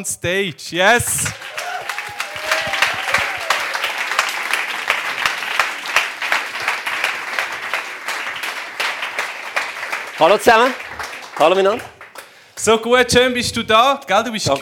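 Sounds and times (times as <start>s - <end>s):
speech: 0.0s - 1.5s, 10.2s - 11.9s, 12.6s - 14.6s
welcome applause for a pastor at an evening stage event: 1.1s - 12.4s.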